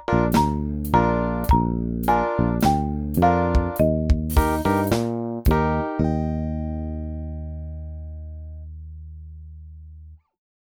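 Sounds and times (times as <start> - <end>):
elevator music in E flat: 0.0 - 7.3.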